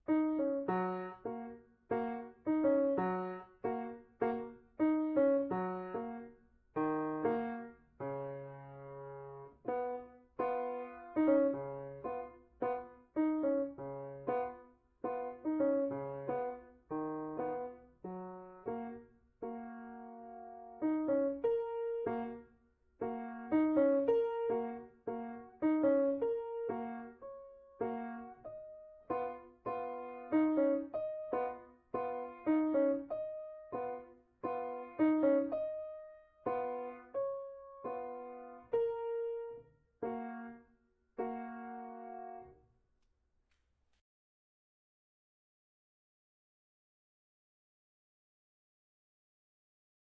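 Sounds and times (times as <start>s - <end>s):
solo piano: 0.0s - 42.7s.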